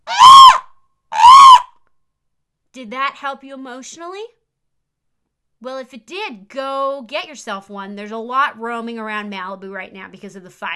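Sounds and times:
person imitating a peacock call: 0:00.0 - 0:01.7
speech: 0:02.8 - 0:04.4, 0:05.6 - 0:10.7.

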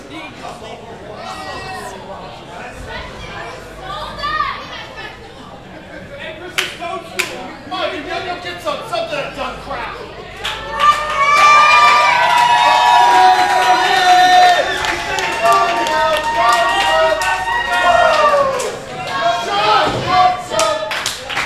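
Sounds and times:
wrestling crowd chanting: 0:00.0 - 0:21.4
live wrestling match crowd clapping and cheering: 0:09.8 - 0:21.4.

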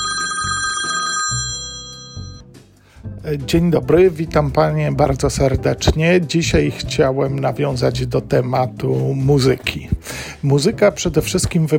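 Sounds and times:
telephone ringing: 0:00.0 - 0:02.5
speech: 0:03.2 - 0:11.7.

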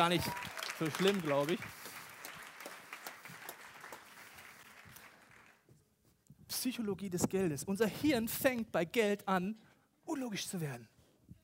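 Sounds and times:
speech: 0:00.0 - 0:01.8, 0:06.6 - 0:10.9
audience clapping: 0:00.0 - 0:05.7.

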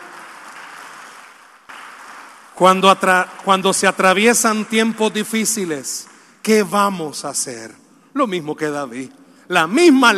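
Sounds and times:
audience applause: 0:00.0 - 0:04.0
speech: 0:02.6 - 0:10.1.

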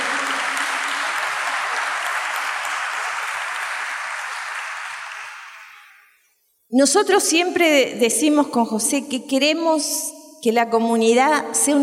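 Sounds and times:
audience applause: 0:00.0 - 0:06.0
speech: 0:06.7 - 0:11.8.

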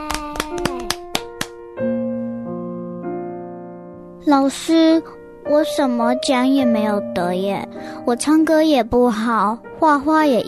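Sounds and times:
children applauding: 0:00.0 - 0:01.5
speech: 0:04.3 - 0:10.4.

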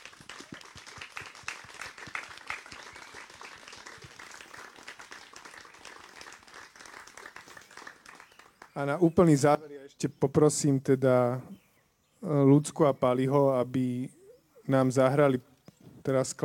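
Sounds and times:
audience applause: 0:00.0 - 0:08.7
speech: 0:08.8 - 0:11.5, 0:12.2 - 0:16.4.

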